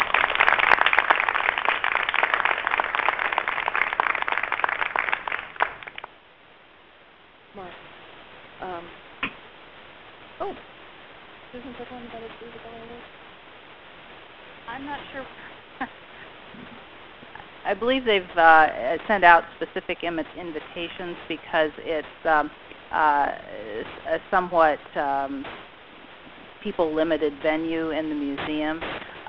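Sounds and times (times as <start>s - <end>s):
audience applause: 0.0s - 6.1s
speech: 11.6s - 13.2s, 14.7s - 16.0s, 17.6s - 25.6s, 26.6s - 29.2s.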